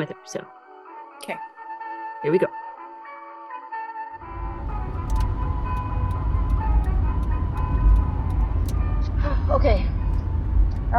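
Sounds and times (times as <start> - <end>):
speech: 0.0 - 0.6, 1.2 - 1.5, 2.2 - 2.6, 9.2 - 10.0
car driving down a highway with road and engine rumble: 4.2 - 10.9
faint regular ticking: 4.8 - 9.1, 9.8 - 10.9.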